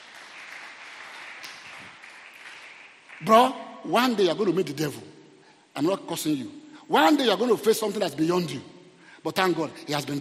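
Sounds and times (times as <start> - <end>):
audience clapping hands: 0.0 - 3.6
speech: 3.2 - 5.1, 5.8 - 10.2.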